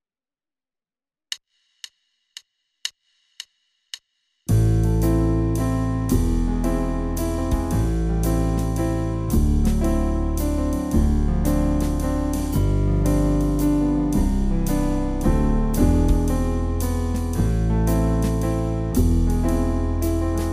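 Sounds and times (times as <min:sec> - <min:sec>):
musical accompaniment: 0:04.5 - 0:20.5.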